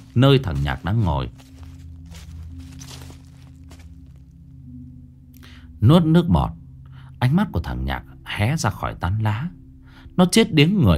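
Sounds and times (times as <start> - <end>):
footsteps crunching and rustling over dry leaves: 0.0 - 4.5
speech: 0.2 - 1.5, 5.8 - 6.6, 7.2 - 9.6, 10.2 - 10.9.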